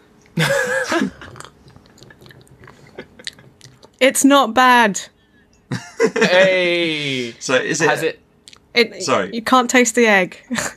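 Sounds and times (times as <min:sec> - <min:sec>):
person sipping a posset drink: 0:01.3 - 0:04.0
speech: 0:04.0 - 0:05.1, 0:06.0 - 0:10.7
laughter: 0:05.7 - 0:07.4.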